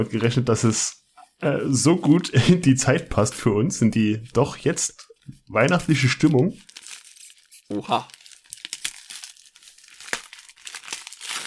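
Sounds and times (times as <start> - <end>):
speech: 0.0 - 6.7, 7.7 - 8.2
wrapping paper crinkling and tearing as a gift package is opened: 5.6 - 11.4.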